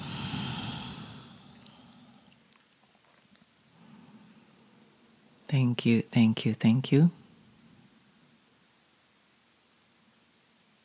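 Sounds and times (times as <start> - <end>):
person breathing deeply during a guided healing exercise: 0.0 - 2.4, 3.7 - 4.6
speech: 5.5 - 7.2.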